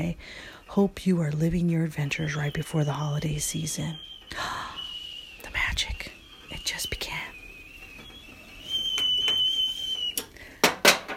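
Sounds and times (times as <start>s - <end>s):
speech: 0.0s - 4.6s, 6.6s - 7.2s
high-pitched whistle: 0.7s - 10.4s
sharp clattering knocks: 8.8s - 11.1s.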